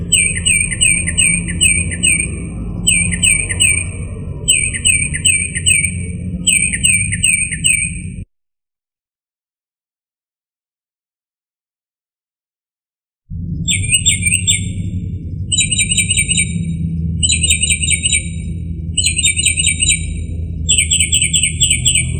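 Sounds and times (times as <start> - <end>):
northern mockingbird singing: 0.0 - 8.2, 13.6 - 22.1.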